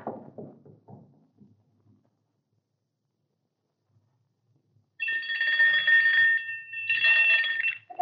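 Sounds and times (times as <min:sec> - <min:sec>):
doorbell ringing: 0:05.0 - 0:07.9.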